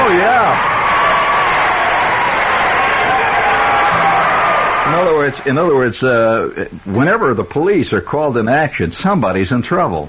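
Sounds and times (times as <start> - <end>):
audience cheering: 0.0 - 6.3
speech: 5.4 - 10.0.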